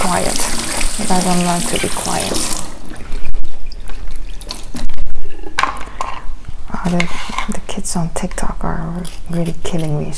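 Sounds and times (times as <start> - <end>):
water running and splashing while a bell pepper is washed: 0.0 - 5.4
speech: 0.1 - 2.7, 6.8 - 10.1.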